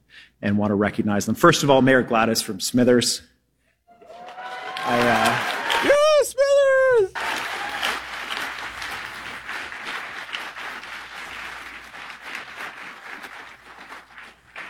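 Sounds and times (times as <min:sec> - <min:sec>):
speech: 0:00.2 - 0:03.3
audience applause: 0:03.9 - 0:06.3, 0:06.9 - 0:14.6.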